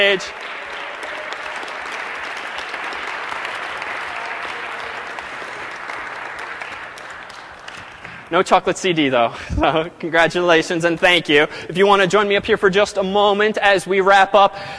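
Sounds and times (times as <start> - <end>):
speech: 0.0 - 0.5, 8.3 - 14.7
crowd applauding: 0.0 - 8.7.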